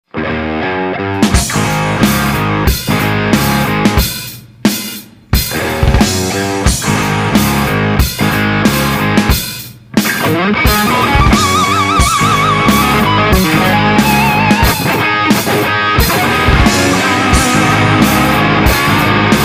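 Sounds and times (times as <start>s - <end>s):
rock music: 0.1s - 19.4s.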